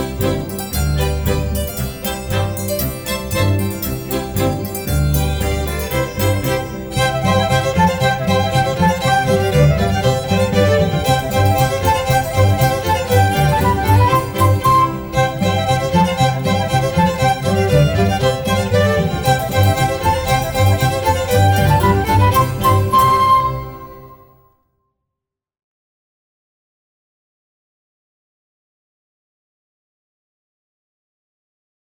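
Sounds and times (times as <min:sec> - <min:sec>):
polka music: 0:00.0 - 0:24.3.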